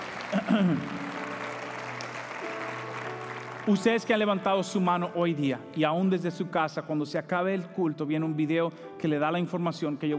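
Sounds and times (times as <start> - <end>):
audience applause: 0.0 - 4.4
speech: 0.3 - 1.1, 3.6 - 10.1.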